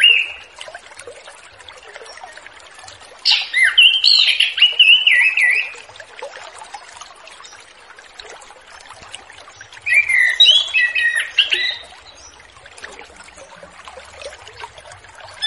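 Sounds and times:
Orange-headed thrush singing whistled and warbled notes: 0:03.3 - 0:05.8, 0:09.8 - 0:12.3.

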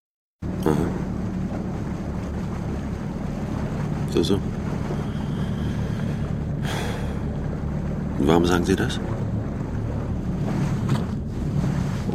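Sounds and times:
boat moving through water at the bow: 0:00.4 - 0:12.1
speech: 0:04.2 - 0:04.6, 0:08.2 - 0:09.2.

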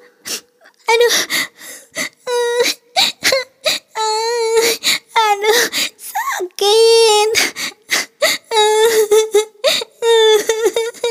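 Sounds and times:
child crying after tripping and falling: 0:02.2 - 0:07.6, 0:08.2 - 0:11.0.

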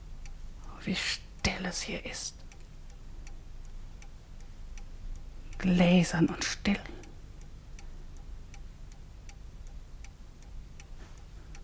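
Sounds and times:
speech: 0:00.8 - 0:02.4, 0:05.6 - 0:07.0
old clock ticking: 0:02.4 - 0:11.6.

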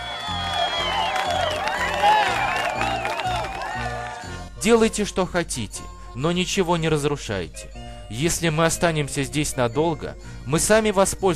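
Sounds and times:
audience ovation with cheering, whoops and clapping: 0:00.0 - 0:04.3
speech: 0:04.6 - 0:11.3.

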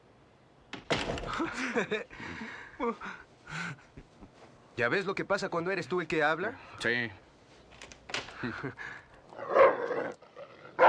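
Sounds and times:
speech: 0:01.4 - 0:04.1, 0:04.8 - 0:07.2, 0:08.4 - 0:09.0
dog barking and growling: 0:09.4 - 0:10.8.

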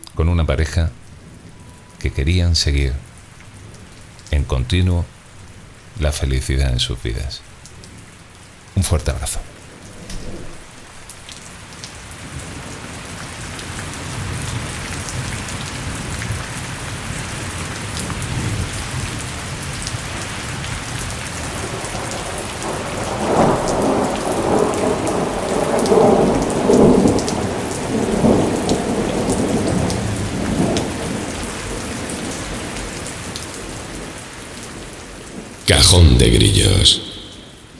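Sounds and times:
rain: 0:00.0 - 0:35.6
speech: 0:00.2 - 0:01.0, 0:02.0 - 0:03.1, 0:04.3 - 0:05.2, 0:06.0 - 0:07.5, 0:08.8 - 0:09.5, 0:35.8 - 0:37.0
thunder: 0:21.6 - 0:31.3.

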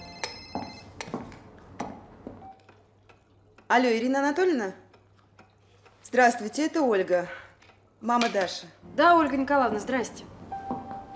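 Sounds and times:
telephone ringing with bright bell-like electronic chime: 0:00.0 - 0:01.0
speech: 0:03.7 - 0:04.8, 0:06.1 - 0:07.4, 0:08.0 - 0:10.3.

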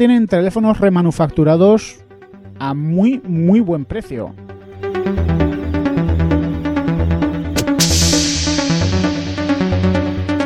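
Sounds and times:
speech: 0:00.0 - 0:02.0, 0:02.6 - 0:05.4
electronic music track with pulsing synth notes and deep bass: 0:00.0 - 0:10.4.

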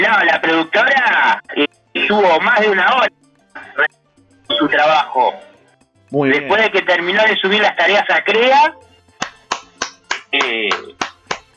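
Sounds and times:
speech: 0:00.0 - 0:05.5, 0:06.1 - 0:08.9, 0:10.3 - 0:11.0
applause: 0:09.2 - 0:11.5.

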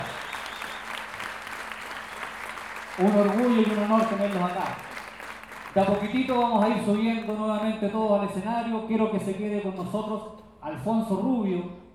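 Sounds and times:
audience applause at a gathering of payadores in Lo Barnechea: 0:00.0 - 0:07.6
speech: 0:03.0 - 0:04.9, 0:05.8 - 0:11.8.

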